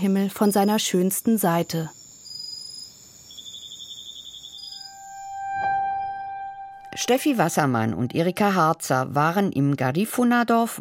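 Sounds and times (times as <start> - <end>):
speech: 0.0 - 2.0, 7.0 - 10.7
cicadas chirping in the evening: 0.0 - 5.4.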